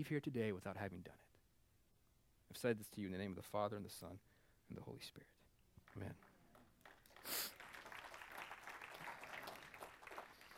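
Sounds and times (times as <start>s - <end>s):
speech: 0.0s - 1.3s, 2.5s - 5.4s, 6.0s - 6.3s
audience applause: 5.9s - 10.5s.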